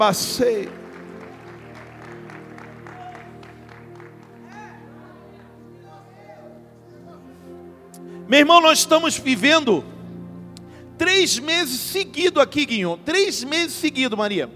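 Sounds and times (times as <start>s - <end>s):
speech: 0.0s - 0.8s, 8.3s - 10.0s, 11.0s - 14.5s
audience applause: 0.0s - 5.7s
sustained organ-like tone: 0.0s - 14.5s.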